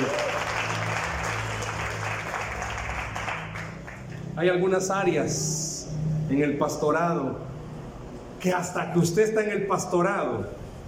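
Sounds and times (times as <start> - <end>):
audience applause: 0.0 - 4.2
speech: 4.4 - 5.7, 6.3 - 7.5, 8.4 - 10.6.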